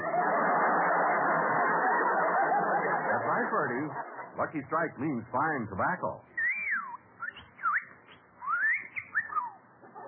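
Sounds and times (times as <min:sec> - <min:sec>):
laughter: 0:00.0 - 0:05.3, 0:09.8 - 0:10.0
speech: 0:03.4 - 0:06.4
talking bird whistling: 0:06.4 - 0:09.6.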